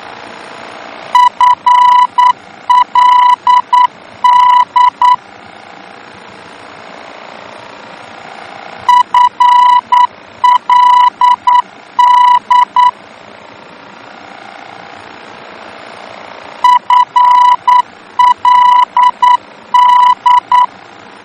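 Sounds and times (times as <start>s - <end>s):
VOR aeronautical radio beacon morse tones in Germany: 1.2s - 5.2s, 8.9s - 13.0s, 16.6s - 20.7s.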